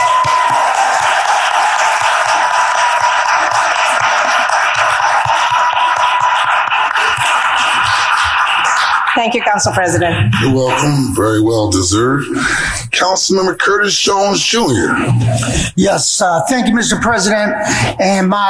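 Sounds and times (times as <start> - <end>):
audience applause: 0.0 - 11.4
speech: 9.2 - 18.4.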